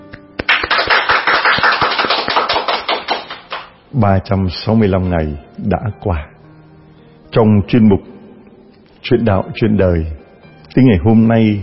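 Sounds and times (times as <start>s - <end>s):
applause: 0.4s - 3.7s
speech: 4.0s - 6.4s, 7.3s - 8.1s, 9.0s - 10.2s, 10.8s - 11.6s.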